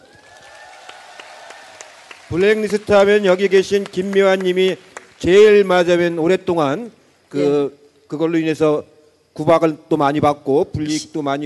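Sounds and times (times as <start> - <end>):
audience applause: 0.0 - 5.7
speech: 2.3 - 11.4
faint steady tone: 6.2 - 10.0.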